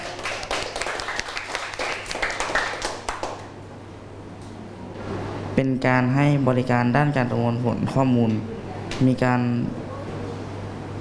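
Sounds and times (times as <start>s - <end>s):
classroom students clapping: 0.0s - 3.6s
speech: 5.6s - 9.8s.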